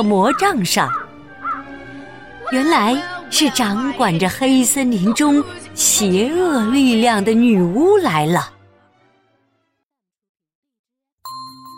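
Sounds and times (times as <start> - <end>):
speech: 0.0 - 1.0, 2.5 - 8.5
crow cawing: 0.0 - 2.0.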